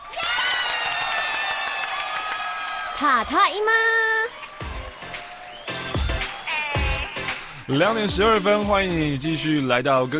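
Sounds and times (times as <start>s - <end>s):
applause and cheering welcoming a female radio host: 0.0s - 7.7s
speech: 3.0s - 4.2s, 7.7s - 10.1s.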